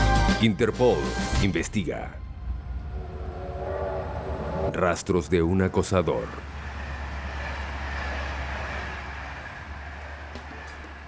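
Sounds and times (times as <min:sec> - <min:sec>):
speech: 0:00.4 - 0:02.2, 0:04.7 - 0:06.5
low drone: 0:01.2 - 0:11.0
night train from Limoges to Paris speeding through the Loire Valley: 0:02.2 - 0:11.0.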